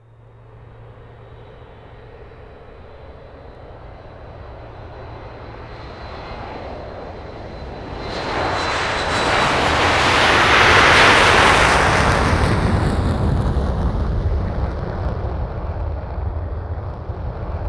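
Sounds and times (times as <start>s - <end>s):
Boeing 747 taking off: 0.1s - 17.6s.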